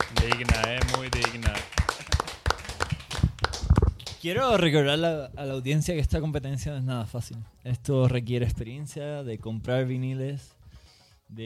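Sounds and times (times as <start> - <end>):
hands clapping: 0.0 - 4.7
speech: 0.2 - 0.8, 4.2 - 10.6, 11.3 - 11.4.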